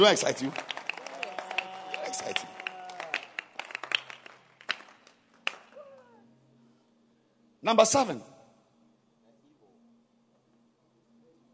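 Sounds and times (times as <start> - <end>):
speech: 0.0 - 0.7, 7.7 - 8.3
church congregation hand claps during a sermon: 0.0 - 6.1.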